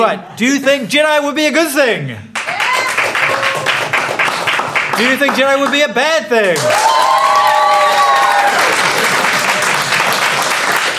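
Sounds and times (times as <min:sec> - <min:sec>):
speech: 0:00.0 - 0:02.6, 0:05.0 - 0:07.1
loud sustained applause from a large crowd: 0:02.4 - 0:05.8, 0:06.6 - 0:10.9.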